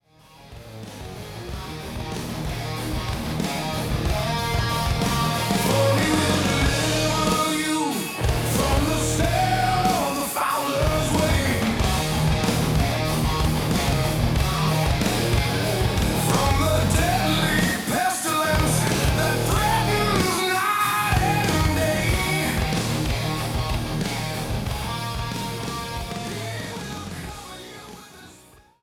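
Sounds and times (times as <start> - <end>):
rock music: 0.0 - 28.8.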